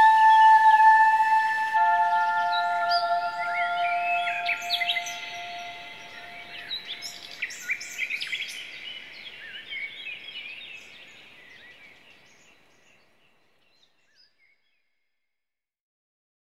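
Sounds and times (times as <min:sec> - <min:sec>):
hypnotic therapy music: 0:00.0 - 0:07.2.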